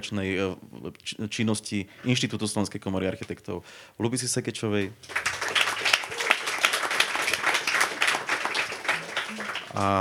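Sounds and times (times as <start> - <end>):
speech: 0.0 - 5.8, 9.8 - 10.0
audience applause: 5.1 - 10.0.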